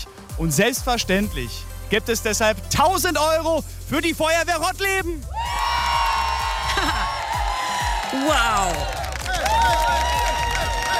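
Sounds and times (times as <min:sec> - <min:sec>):
speech: 0:00.4 - 0:05.4, 0:08.1 - 0:09.0
crowd applause and cheering: 0:05.2 - 0:10.9.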